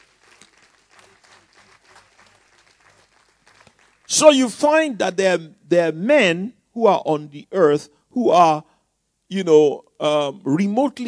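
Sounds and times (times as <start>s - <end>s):
audience clapping as an offering for the Lord: 0.0s - 4.6s
speech: 4.1s - 8.7s, 9.3s - 11.0s.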